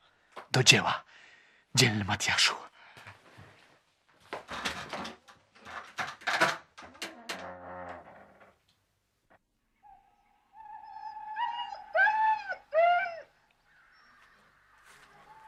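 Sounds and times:
speech: 0.6 - 1.0, 1.8 - 2.7
dogs whimpering: 9.9 - 15.4.

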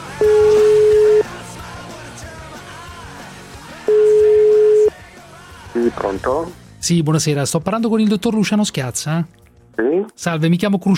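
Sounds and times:
telephone ringback tone while calling a doctor: 0.2 - 1.3, 3.9 - 4.9
speech: 6.0 - 10.9.

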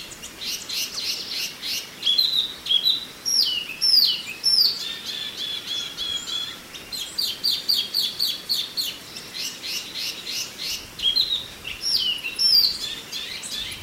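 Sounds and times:
Oriental magpie-robin song: 0.0 - 13.8.

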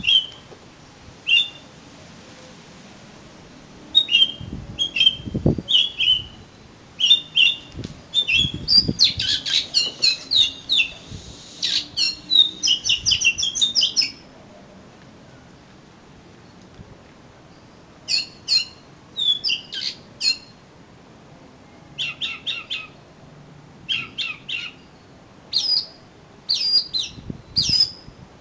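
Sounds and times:
Oriental magpie-robin whistling song: 0.0 - 0.4, 1.3 - 1.7, 3.9 - 14.2, 18.1 - 20.6, 22.0 - 23.0, 23.9 - 24.9, 25.5 - 28.1.

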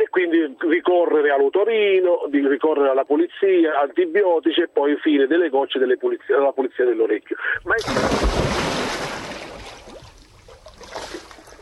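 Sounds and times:
speech: 0.1 - 8.7
water splashing and sloshing as people dive and swim: 7.6 - 11.6.

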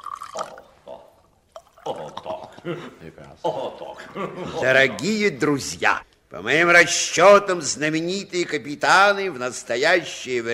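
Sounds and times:
drinks poured into glasses: 0.0 - 0.8, 1.5 - 2.3
laughter: 1.9 - 5.3
speech: 1.9 - 10.5.

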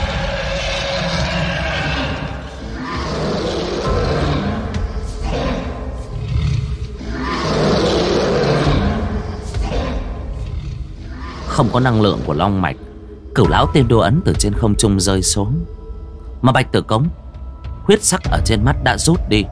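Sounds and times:
dragon roar sound effect: 0.0 - 12.8
speech: 11.6 - 15.8, 16.4 - 17.2, 17.8 - 19.5.

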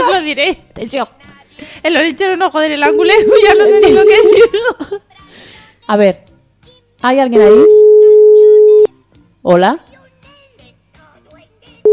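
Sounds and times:
speech: 0.3 - 6.3, 7.0 - 7.7, 9.4 - 9.9
telephone ringing tone on a live phone call: 2.8 - 4.5, 7.6 - 8.9
laughter: 3.0 - 5.0.

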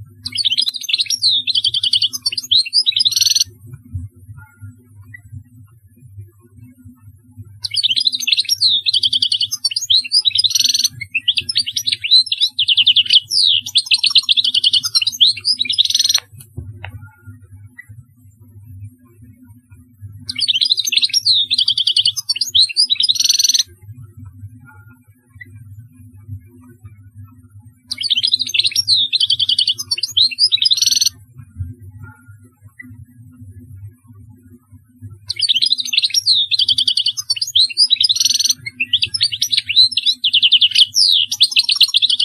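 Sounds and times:
European goldfinch singing: 0.2 - 3.5, 7.6 - 16.2, 20.3 - 23.6, 27.9 - 31.1, 35.3 - 42.2.

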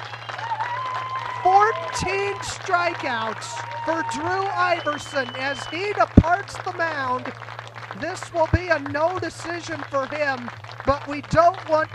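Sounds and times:
crowd applause and cheering at an American Legion baseball game: 0.0 - 11.9
low electrical hum: 0.0 - 11.9
announcer speaking: 1.4 - 7.3, 8.0 - 11.9
speech: 1.8 - 11.9.

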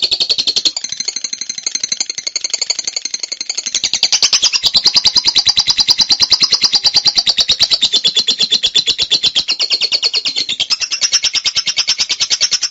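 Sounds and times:
bird song of high rattling pulses: 0.0 - 12.6.

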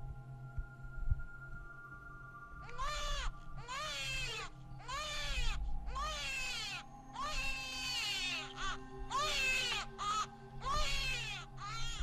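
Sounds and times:
low steady hum: 0.0 - 12.0
baby crying shrilly at night by a river at the edge of a village: 2.6 - 12.0.

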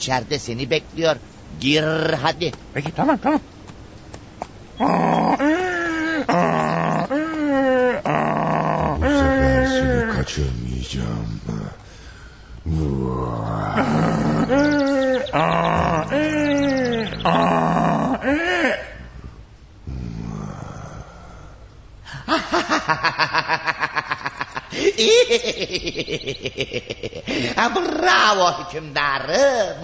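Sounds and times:
speech: 0.0 - 3.5, 4.8 - 5.2, 10.2 - 11.8, 12.7 - 18.8, 24.8 - 29.8
donkey braying: 4.8 - 10.3, 12.7 - 19.2
laughter: 13.8 - 17.4, 22.1 - 28.4.

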